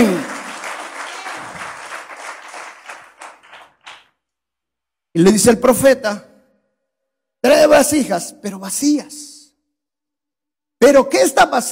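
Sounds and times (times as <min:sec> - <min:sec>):
audience applauding forcefully: 0:00.0 - 0:04.1
speech: 0:05.2 - 0:06.3, 0:07.4 - 0:09.3, 0:10.8 - 0:11.7.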